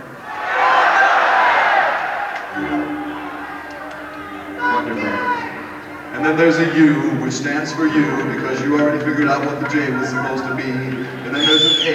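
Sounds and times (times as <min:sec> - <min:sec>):
audience yelling out answers together: 0:00.0 - 0:11.9
speech: 0:06.3 - 0:11.9.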